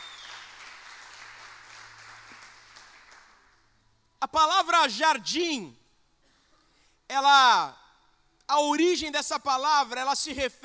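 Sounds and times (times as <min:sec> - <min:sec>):
audience applause: 0:00.0 - 0:03.6
speech: 0:04.2 - 0:05.8, 0:07.1 - 0:07.8, 0:08.5 - 0:10.6.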